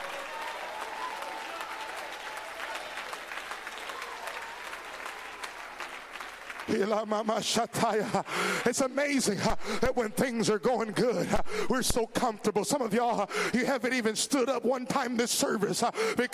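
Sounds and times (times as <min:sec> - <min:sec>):
audience clapping hands: 0:00.0 - 0:10.3
speech: 0:06.7 - 0:16.3.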